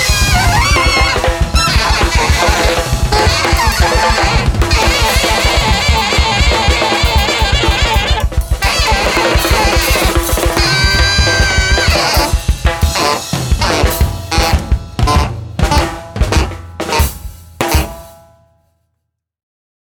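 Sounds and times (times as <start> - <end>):
saxophone improvisation: 0.0 - 18.0.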